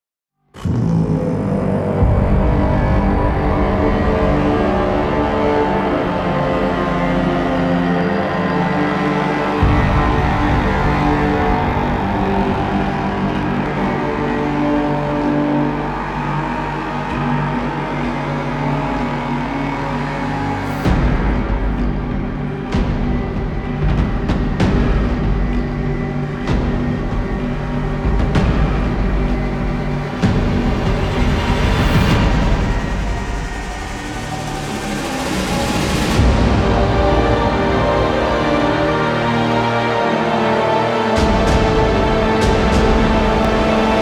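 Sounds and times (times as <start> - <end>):
climax music cue: 0.6 - 44.0.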